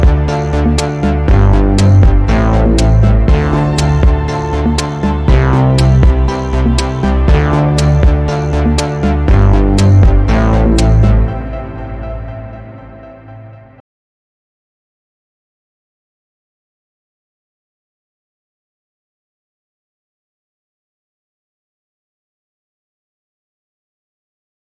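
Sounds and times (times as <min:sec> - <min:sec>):
funk synth: 0:00.0 - 0:13.4.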